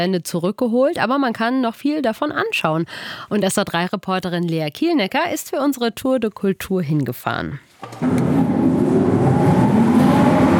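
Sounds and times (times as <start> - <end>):
speech: 0.0 - 8.4
old ventilation system motors running: 7.8 - 10.5.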